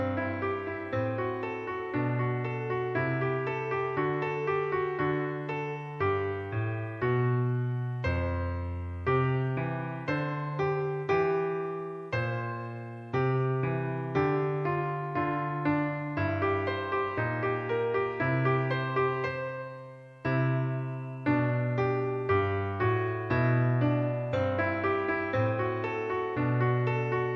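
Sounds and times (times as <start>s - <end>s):
piano piece: 0.0s - 27.3s.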